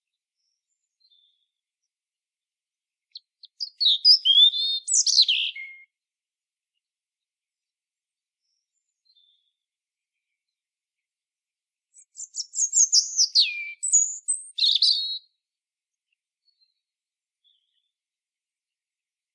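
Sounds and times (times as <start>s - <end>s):
European robin warbling song: 3.6s - 5.8s, 12.0s - 15.2s.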